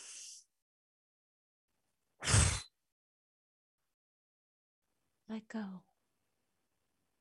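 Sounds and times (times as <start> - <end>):
loud forceful exhale of breath during a guided relaxation breathing exercise: 0.0 - 0.4
fainter hissy breath: 0.0 - 0.5
speech: 5.3 - 5.9.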